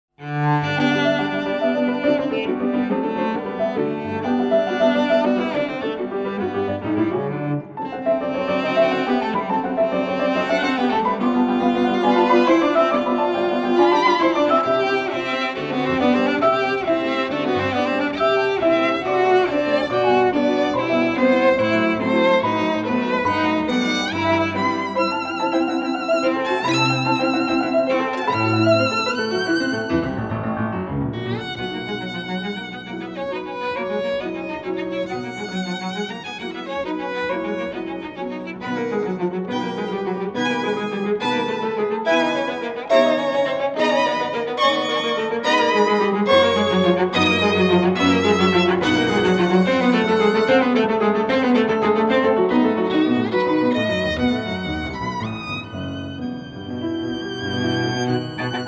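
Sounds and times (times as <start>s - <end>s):
piano trio: 0.2s - 58.6s.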